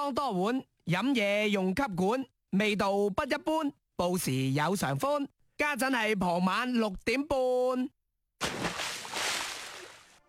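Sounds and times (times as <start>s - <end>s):
speech: 0.0s - 8.6s
water splash and sloshing in summer: 8.4s - 10.2s.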